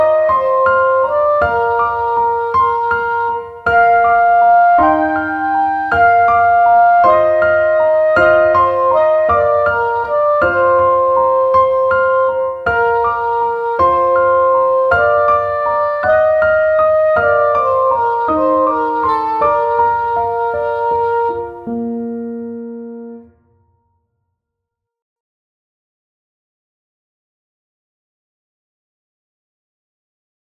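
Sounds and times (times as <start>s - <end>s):
saxophone: 0.0s - 23.4s
trumpet: 0.0s - 23.4s.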